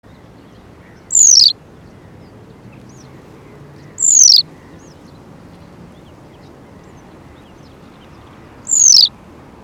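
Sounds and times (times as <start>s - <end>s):
western yellow wagtail calling: 0.0s - 9.2s.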